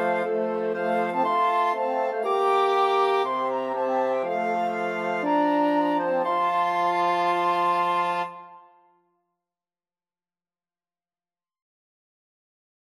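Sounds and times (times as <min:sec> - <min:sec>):
wind quartet playing a wedding march: 0:00.0 - 0:08.6.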